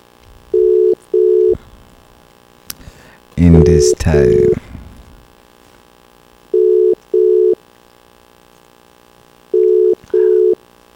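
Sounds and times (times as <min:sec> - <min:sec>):
telephone ringing tone while calling someone: 0:00.5 - 0:01.6, 0:06.5 - 0:07.6, 0:09.5 - 0:10.6
speech: 0:03.4 - 0:04.6.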